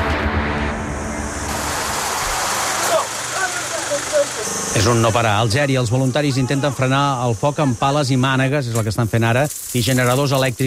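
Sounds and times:
firefighting seaplane engines droning: 0.2 - 8.2
speech: 4.8 - 10.6.

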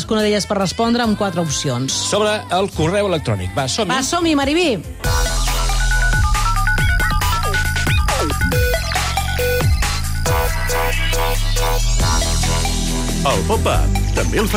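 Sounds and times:
speech: 0.1 - 5.2, 13.2 - 14.5
quiz game background music, looping electronic tune with pulsing bass: 5.0 - 14.5.

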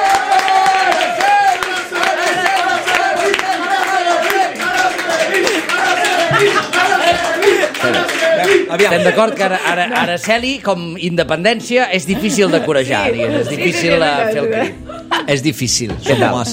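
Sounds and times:
cheers and whoops: 0.0 - 8.7
crowd applauding: 0.0 - 10.6
laughter: 4.7 - 10.5, 11.4 - 16.5
speech: 8.7 - 16.5.

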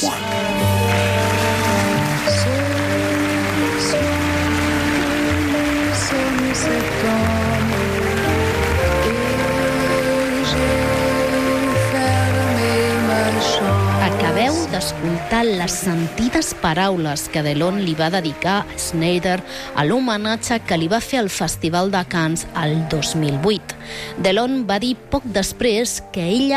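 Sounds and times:
audience standing ovation applause: 0.0 - 20.9
speech: 15.2 - 26.5.

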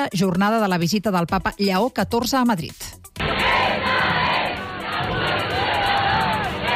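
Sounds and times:
speech: 0.0 - 3.4
crowd of over half a million young people at papal gathering in Madrid: 3.2 - 6.7
people shouting: 3.2 - 6.7.

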